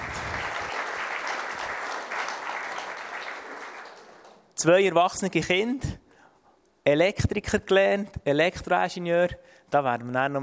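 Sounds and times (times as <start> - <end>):
audience applause welcoming a guest: 0.0 - 4.4
speech: 4.6 - 6.0, 6.8 - 10.4.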